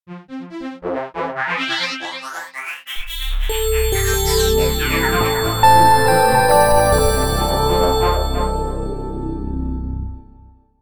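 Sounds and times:
logo jingle: 3.5s - 10.6s.

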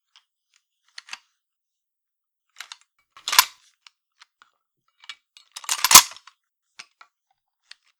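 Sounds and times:
empty M1 Garand rifle being reloaded: 3.2s - 3.5s, 5.7s - 6.2s.

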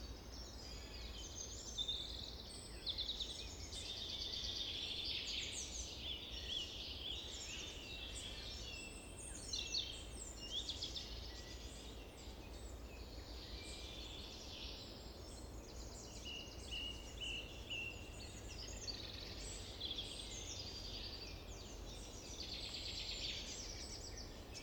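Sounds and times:
summer forest ambience: 0.0s - 24.6s.

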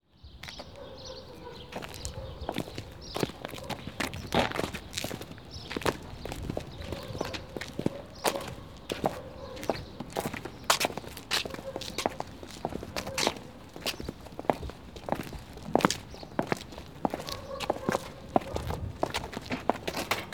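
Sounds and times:
footsteps outside: 1.7s - 20.3s.

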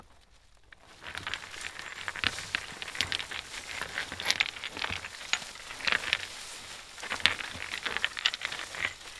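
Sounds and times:
rocks rolling: 0.7s - 9.1s.

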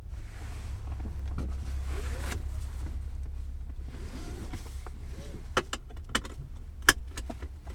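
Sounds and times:
seatbelt being pulled: 0.2s - 3.0s, 3.8s - 5.5s
seatbelt buckle clicking: 5.5s - 7.7s.

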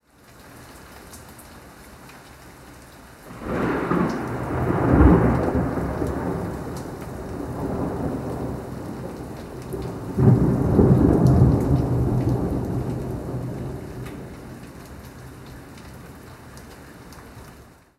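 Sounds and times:
thunderclap: 3.3s - 14.7s.

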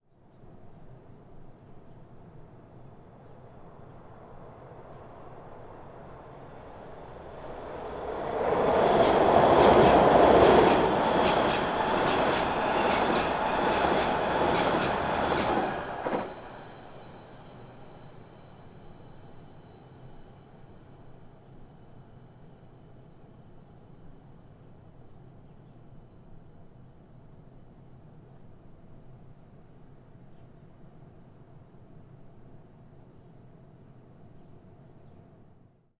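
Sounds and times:
subway train passing in Maryland US: 2.2s - 24.3s.

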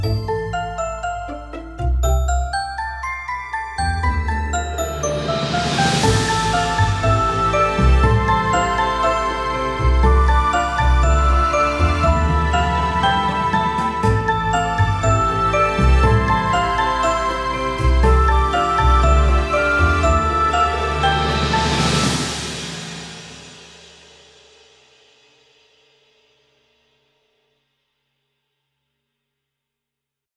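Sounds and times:
spooky Halloween soundtrack: 0.0s - 23.7s.

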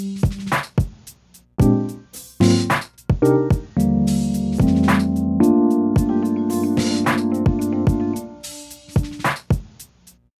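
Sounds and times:
background music loop: 1.6s - 9.6s.

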